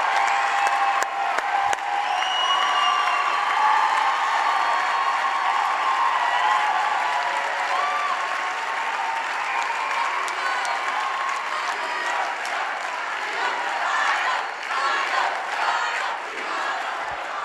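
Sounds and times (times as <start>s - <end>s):
whoops and shouts: 0.0s - 11.5s
large crowd cheering and applauding: 0.0s - 17.4s.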